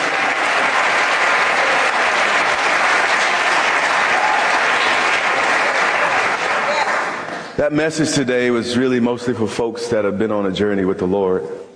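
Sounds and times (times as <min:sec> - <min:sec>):
audience clapping hands: 0:00.0 - 0:07.6
speech: 0:07.6 - 0:11.6.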